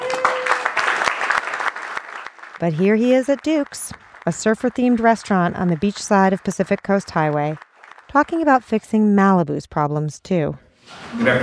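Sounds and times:
audience applause: 0.0 - 9.0
speech: 2.6 - 11.4.

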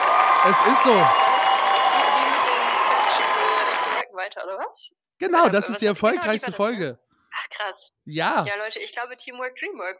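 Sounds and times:
cheering crowd sound effect: 0.0 - 4.0
speech: 0.4 - 1.3, 4.5 - 9.9.

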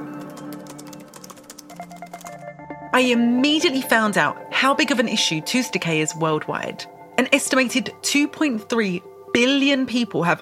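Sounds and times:
rapid typing on a computer keyboard during a Google search: 0.0 - 2.4
soft steady tonal background: 0.0 - 10.4
speech: 2.9 - 10.4.

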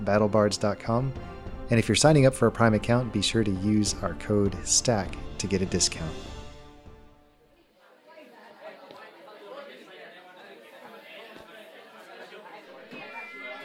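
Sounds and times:
speech: 0.0 - 6.3
dense crowd of revelers chattering in a great hall: 7.4 - 13.6.

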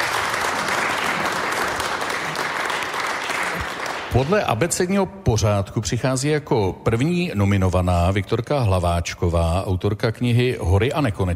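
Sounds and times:
audience applause: 0.0 - 4.5
speech: 4.1 - 11.3.

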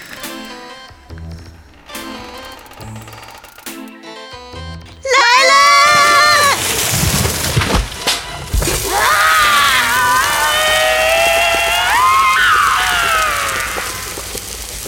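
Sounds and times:
tiger spirit screaming: 5.1 - 6.6, 8.8 - 14.3
pot smashing on head: 5.9 - 11.9.

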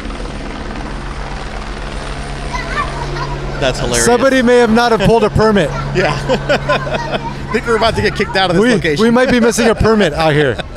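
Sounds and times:
sheriff's helicopter circling overhead: 0.0 - 10.7
speech: 3.6 - 10.7
laughter: 4.0 - 10.7.

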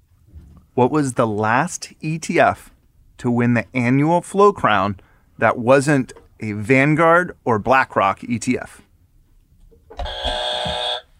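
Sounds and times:
speech: 0.8 - 8.9
quiz show buzzer: 10.0 - 11.1.

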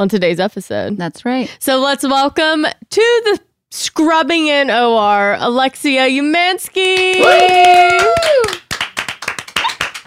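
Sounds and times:
speech: 0.0 - 8.6
hands clapping: 6.8 - 10.0.

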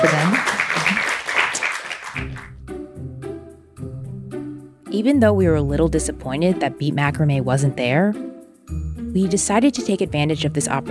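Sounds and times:
speech: 0.0 - 0.5, 5.0 - 10.9
audience applause: 0.0 - 2.6.

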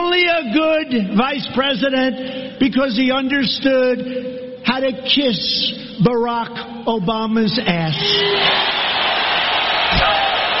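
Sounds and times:
speech: 0.4 - 8.8
large crowd cheering: 8.1 - 10.5.

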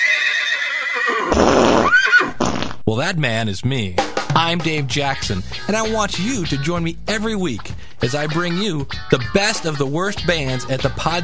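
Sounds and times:
parade horse neighing: 0.0 - 2.6
parade horse snorting: 1.1 - 2.7
speech: 2.9 - 11.2.

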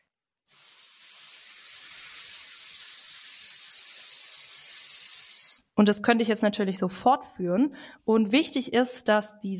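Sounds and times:
steady exhale on an S hiss: 0.5 - 5.6
speech: 5.8 - 9.5.

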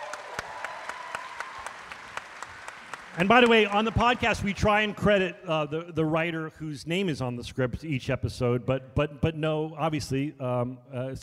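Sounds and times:
audience applause: 0.0 - 5.0
speech: 3.2 - 11.2.

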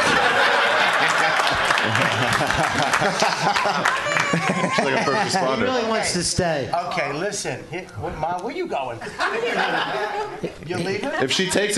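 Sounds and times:
audience clapping: 0.0 - 5.0
laughter: 0.0 - 5.8, 9.0 - 11.7
speech: 2.6 - 11.7.

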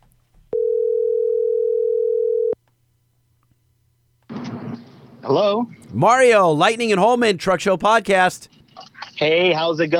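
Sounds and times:
telephone dial tone: 0.5 - 2.6
speech: 5.3 - 8.6, 9.2 - 9.9.

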